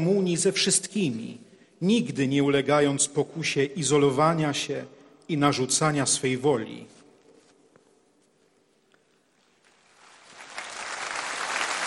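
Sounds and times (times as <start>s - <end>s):
speech: 0.0s - 7.0s
crowd applause: 10.0s - 11.8s.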